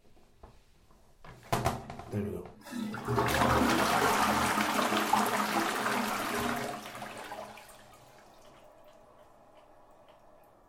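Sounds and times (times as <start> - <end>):
speech: 2.1 - 3.5
toilet flushing: 2.6 - 10.6.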